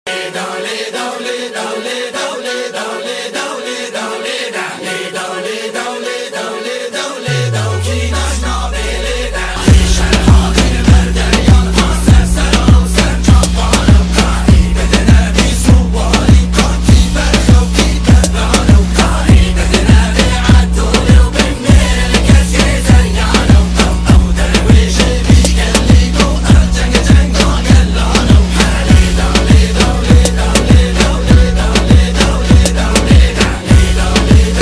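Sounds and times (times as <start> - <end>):
Kurdish trap remix: 0.1 - 34.5.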